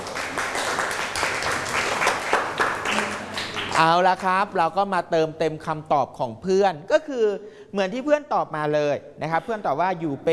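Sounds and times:
group clapping: 0:00.0 - 0:04.5
speech: 0:03.8 - 0:10.3.

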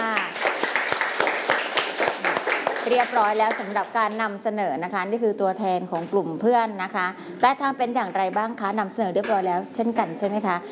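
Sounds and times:
class applauding student group after its presentation: 0:00.0 - 0:03.9
speech: 0:02.9 - 0:10.7.

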